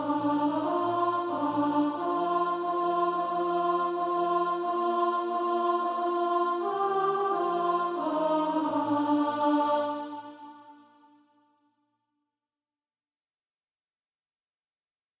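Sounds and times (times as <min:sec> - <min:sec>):
alto voice singing SATB practice music: 0:00.0 - 0:10.9.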